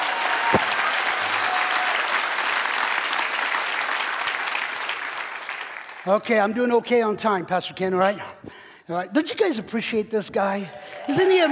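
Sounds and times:
audience clapping: 0:00.0 - 0:06.3, 0:10.7 - 0:11.4
speech: 0:06.0 - 0:11.4.

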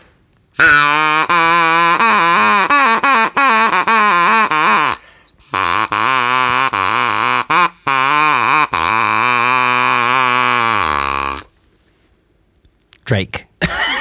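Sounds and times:
duck call imitating a drake: 0:00.6 - 0:11.5
speech: 0:13.1 - 0:13.4.

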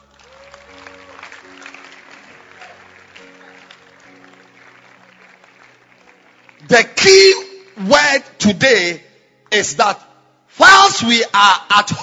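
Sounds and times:
audience clapping: 0:00.0 - 0:07.9
speech: 0:06.7 - 0:10.0, 0:10.6 - 0:12.0.

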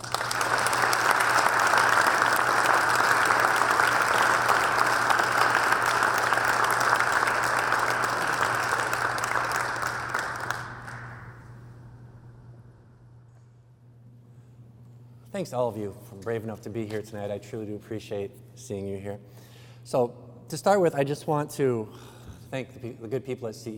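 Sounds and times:
audience applause welcoming a speaker: 0:00.0 - 0:11.6
speech: 0:15.4 - 0:23.7.

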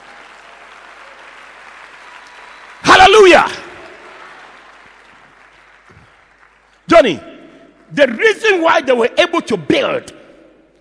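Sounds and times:
audience hand clapping: 0:00.0 - 0:07.9
speech: 0:03.4 - 0:03.6, 0:07.0 - 0:07.3, 0:07.9 - 0:10.2.

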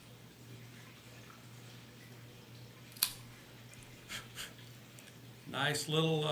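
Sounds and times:
Cigarism Hollow Cut Guillotine Cutter snipping an Oscar 2012 Maduro Toro cigar cap: 0:02.9 - 0:03.2
speech: 0:05.5 - 0:06.3.

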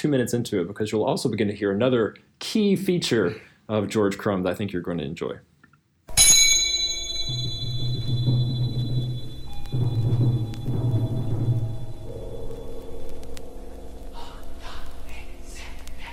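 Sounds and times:
speech: 0:00.0 - 0:05.5
antique cymbal strike ringing: 0:06.1 - 0:14.6
faint metallic pings: 0:06.1 - 0:14.6
sustained lower tones: 0:06.2 - 0:16.1.

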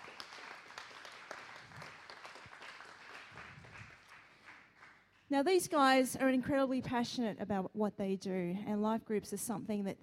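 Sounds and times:
audience applause: 0:00.0 - 0:05.0
speech: 0:05.3 - 0:10.0.

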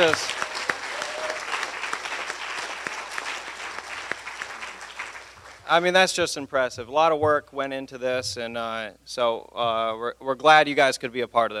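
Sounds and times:
speech: 0:00.0 - 0:00.4, 0:05.7 - 0:11.5
group applause: 0:00.0 - 0:05.8.

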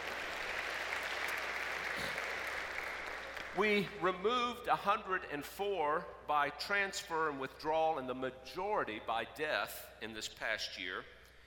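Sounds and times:
audience applause: 0:00.0 - 0:03.6
speech: 0:03.6 - 0:11.2.

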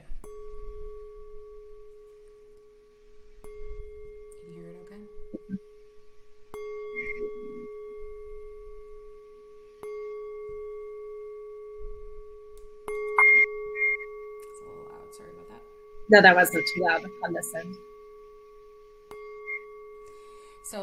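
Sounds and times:
struck singing bowl ringing: 0:00.0 - 0:20.8
brief vocal sounds: 0:05.4 - 0:05.6
speech: 0:16.1 - 0:17.9.

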